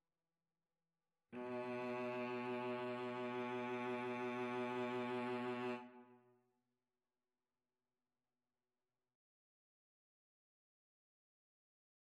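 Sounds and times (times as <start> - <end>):
cello duet: 1.4 - 6.2.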